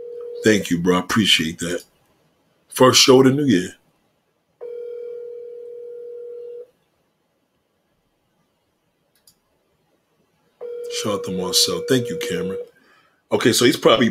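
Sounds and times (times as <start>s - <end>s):
ringback tone of an unanswered phone call: 0.0s - 0.6s, 4.6s - 6.7s, 10.6s - 12.6s
speech: 0.4s - 1.9s, 2.7s - 3.8s, 11.0s - 12.7s, 13.3s - 14.0s
faint clicks: 9.1s - 9.4s.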